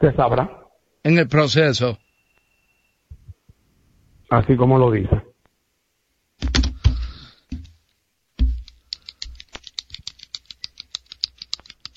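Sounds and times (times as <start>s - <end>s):
speech: 0.0s - 2.0s, 4.3s - 5.3s, 6.4s - 6.7s
pen tapping or clicking: 6.4s - 7.8s, 8.4s - 11.9s.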